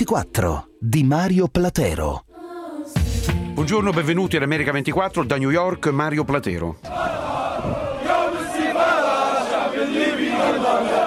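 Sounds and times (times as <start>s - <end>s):
speech: 0.0s - 2.2s, 3.2s - 7.0s
demonstrators shouting in Tripoli, Libya: 6.8s - 11.0s.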